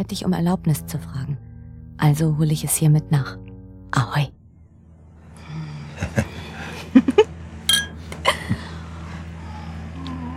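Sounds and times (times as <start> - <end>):
speech: 0.0 - 1.4, 2.0 - 4.4
glasses of sparkling wine clinking in a toast: 7.7 - 8.1.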